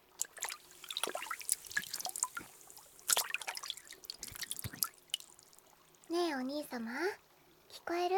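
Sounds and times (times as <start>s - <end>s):
hot water poured over the ear: 0.0s - 6.3s
speech: 6.1s - 7.2s, 7.9s - 8.1s.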